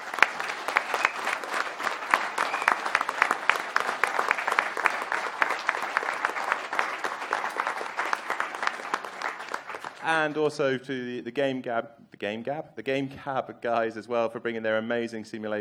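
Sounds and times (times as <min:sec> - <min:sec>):
audience round of applause: 0:00.0 - 0:10.5
speech: 0:10.1 - 0:15.5.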